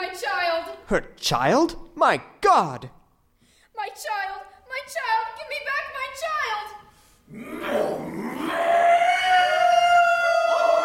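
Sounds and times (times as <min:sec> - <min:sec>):
speech: 0:00.9 - 0:03.0, 0:03.8 - 0:06.6
wolf howling: 0:07.4 - 0:10.8.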